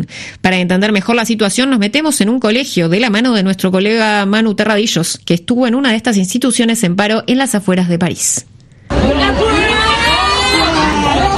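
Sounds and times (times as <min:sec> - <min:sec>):
speech: 0:00.1 - 0:09.8
students shouting and chanting at a protest: 0:08.9 - 0:11.3.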